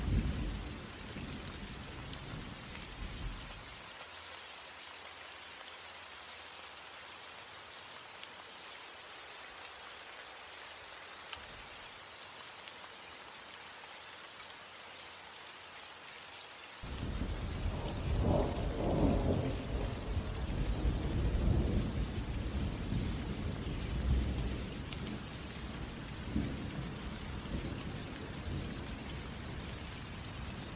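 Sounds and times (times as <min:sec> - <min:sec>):
rain hissing in a light thunderstorm: 0:00.0 - 0:30.7.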